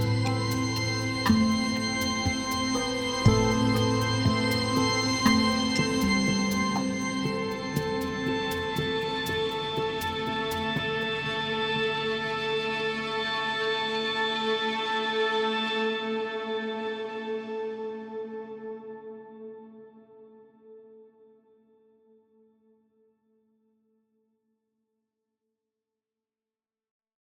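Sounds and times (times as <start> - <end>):
violin: 0.0 - 18.9.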